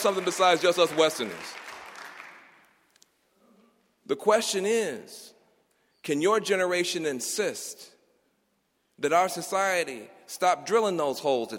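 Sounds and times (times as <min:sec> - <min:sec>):
speech: 0:00.0 - 0:01.7, 0:04.1 - 0:05.4, 0:06.0 - 0:07.9, 0:09.0 - 0:11.5
audience applause: 0:00.0 - 0:02.7
lone claps: 0:00.0 - 0:02.7.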